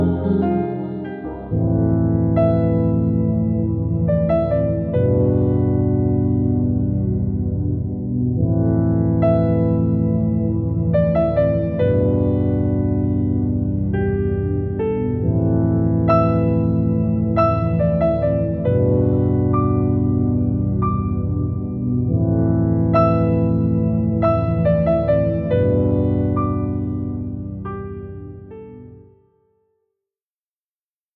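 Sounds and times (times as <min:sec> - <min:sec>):
sad tranquil music: 0:00.0 - 0:29.2.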